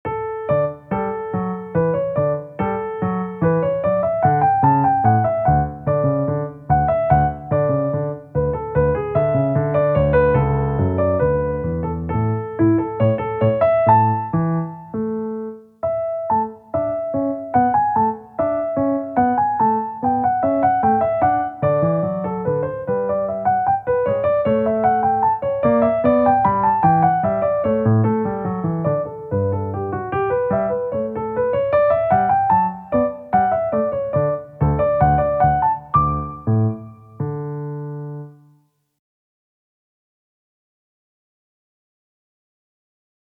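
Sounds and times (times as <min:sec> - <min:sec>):
piano march in D major: 0:00.0 - 0:38.7.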